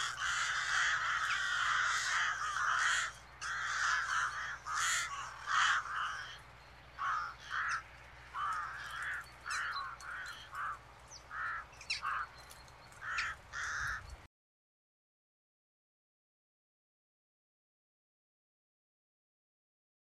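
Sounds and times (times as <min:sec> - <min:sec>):
noisy flock of crows: 0:00.0 - 0:14.2.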